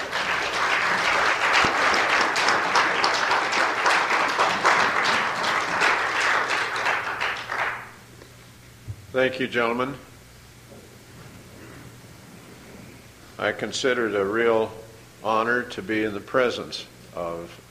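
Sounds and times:
audience applause: 0.0s - 8.0s
speech: 9.2s - 10.1s, 13.4s - 17.6s.

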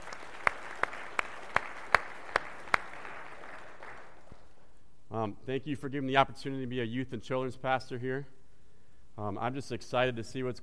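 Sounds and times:
sparse handclaps: 0.0s - 4.5s
faint hiss: 0.0s - 10.6s
speech: 5.2s - 8.4s, 9.2s - 10.6s.

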